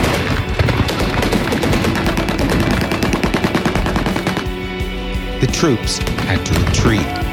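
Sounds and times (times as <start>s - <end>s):
heavy machine gun fire during a combat counterattack: 0.0s - 4.6s
speech: 5.6s - 7.2s.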